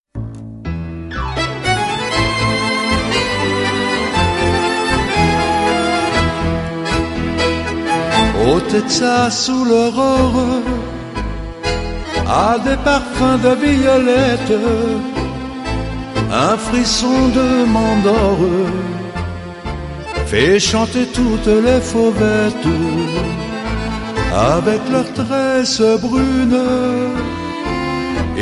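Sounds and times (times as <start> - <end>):
tango music: 0.2 - 28.3.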